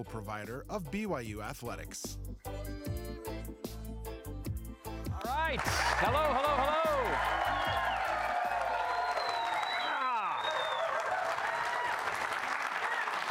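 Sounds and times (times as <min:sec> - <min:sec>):
speech: 0:00.0 - 0:03.8, 0:05.3 - 0:07.6
studio audience clapping in Studio C at BYU in Provo, Utah: 0:05.2 - 0:13.2.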